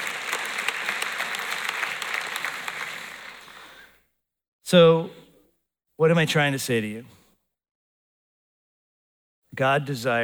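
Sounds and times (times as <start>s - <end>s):
clapping: 0.0s - 3.8s
speech: 4.7s - 5.2s, 6.0s - 7.2s, 9.6s - 10.2s.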